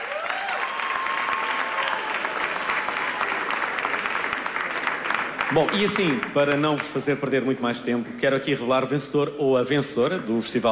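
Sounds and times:
whistles and cheers: 0:00.0 - 0:03.5
crowd clapping: 0:00.0 - 0:07.3
speech: 0:05.5 - 0:10.7.

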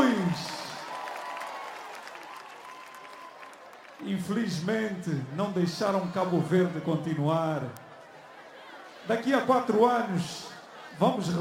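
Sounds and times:
round of applause: 0:00.0 - 0:05.3
speech: 0:04.0 - 0:07.8, 0:09.1 - 0:11.4.

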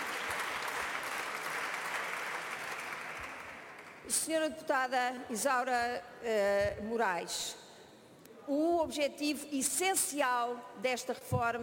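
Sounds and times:
applause in parliament: 0:00.0 - 0:04.1
speech: 0:04.1 - 0:07.6, 0:08.5 - 0:11.6.

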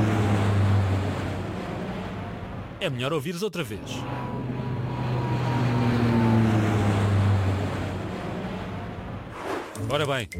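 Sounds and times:
airplane passing overhead: 0:00.0 - 0:02.8, 0:03.7 - 0:09.6
speech: 0:02.8 - 0:04.3, 0:09.9 - 0:10.3.

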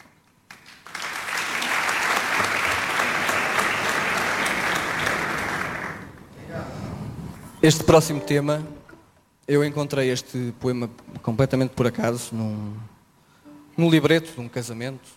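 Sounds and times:
audience applause: 0:00.5 - 0:06.2
speech: 0:07.6 - 0:08.8, 0:09.5 - 0:12.9, 0:13.8 - 0:15.1.

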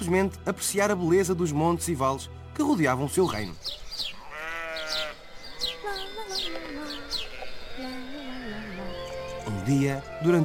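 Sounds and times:
speech: 0:00.1 - 0:03.8, 0:09.7 - 0:10.4
small birds chirping: 0:00.1 - 0:10.4
flock of sheep bleating while grazing in a meadow: 0:04.2 - 0:08.0.

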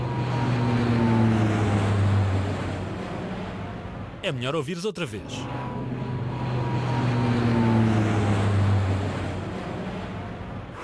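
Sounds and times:
airplane passing overhead: 0:00.0 - 0:04.2, 0:05.3 - 0:10.8
speech: 0:04.2 - 0:05.8.

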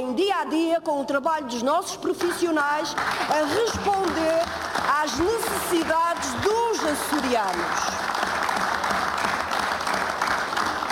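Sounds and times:
speech: 0:00.0 - 0:08.3
applause from parliament benches: 0:02.1 - 0:10.9.

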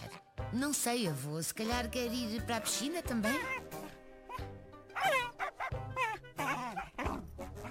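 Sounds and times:
speech: 0:00.5 - 0:03.7
small dog barking excitedly: 0:05.0 - 0:07.7.

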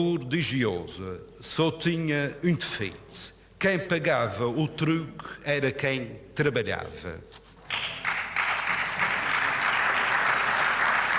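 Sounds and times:
speech: 0:00.0 - 0:07.4
applause from parliament benches: 0:07.7 - 0:11.1.

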